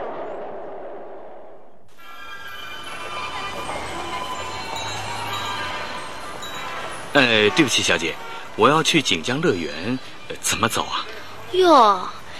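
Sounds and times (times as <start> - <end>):
Shanghai metro train: 2.0 - 11.4
speech: 7.1 - 12.2.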